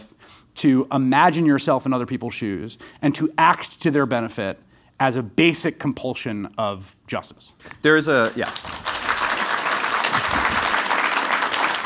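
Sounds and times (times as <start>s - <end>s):
speech: 0.6s - 8.9s
audience applause: 8.3s - 11.8s.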